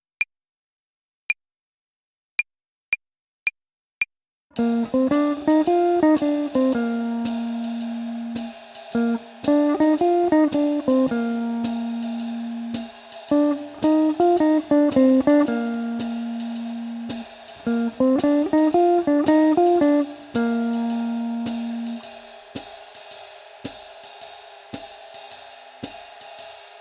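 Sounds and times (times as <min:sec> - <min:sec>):
swing phrasing exercise: 0:04.6 - 0:22.2.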